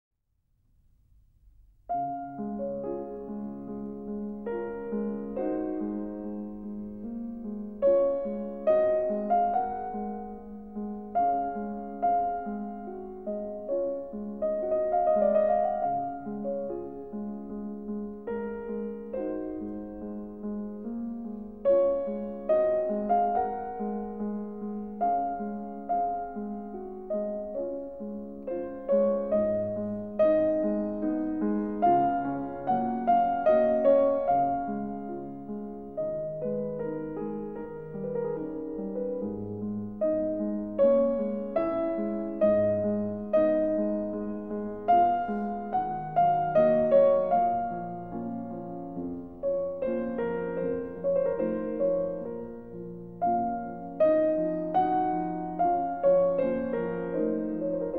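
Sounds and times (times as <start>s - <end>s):
piano prelude in D flat: 1.0s - 57.9s.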